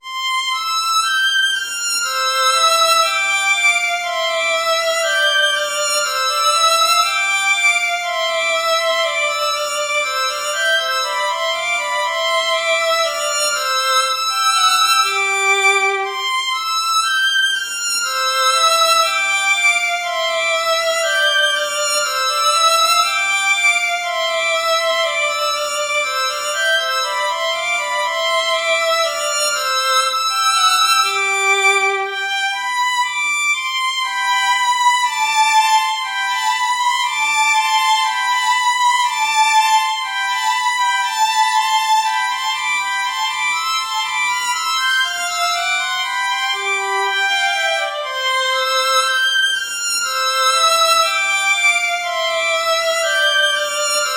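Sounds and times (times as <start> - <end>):
moderately fast instrumental music: 0.0 - 54.1.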